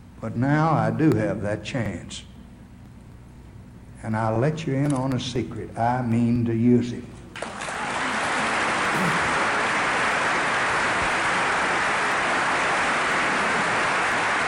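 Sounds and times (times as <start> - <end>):
speech: 0.2 - 2.3, 4.0 - 7.2
large audience applause: 7.4 - 14.4.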